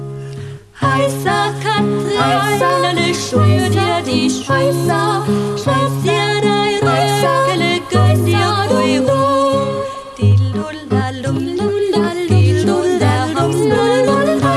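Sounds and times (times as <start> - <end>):
singing: 0.8 - 14.5.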